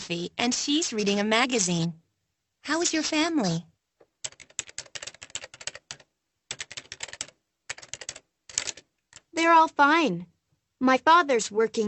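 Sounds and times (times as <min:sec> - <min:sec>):
speech: 0:00.1 - 0:02.0, 0:02.6 - 0:03.7, 0:09.4 - 0:11.8
rapid keyboard typing: 0:04.0 - 0:09.4.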